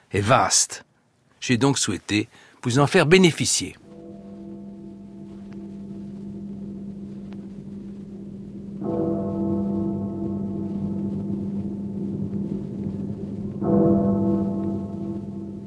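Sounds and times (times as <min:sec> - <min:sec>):
speech: 0:00.1 - 0:03.8
clock bell striking midnight: 0:03.8 - 0:15.6
rain falling: 0:03.8 - 0:15.6.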